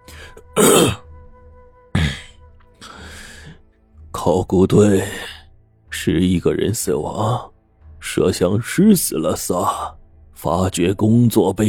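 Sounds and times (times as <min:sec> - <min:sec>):
man clearing his throat: 0:00.3 - 0:01.0, 0:02.0 - 0:02.4
speech: 0:04.2 - 0:05.3, 0:06.0 - 0:07.5, 0:08.2 - 0:11.6.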